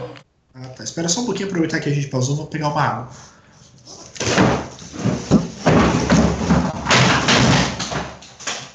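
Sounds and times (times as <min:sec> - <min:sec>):
speech: 0:01.0 - 0:03.3
chair toppling over with a heavy thud: 0:04.2 - 0:08.7
loud bumps and clattering knocks: 0:04.2 - 0:08.7.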